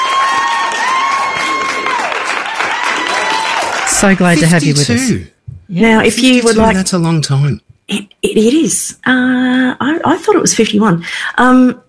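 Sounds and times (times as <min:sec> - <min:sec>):
crowd clapping: 0:00.0 - 0:04.6
speech: 0:04.0 - 0:11.8.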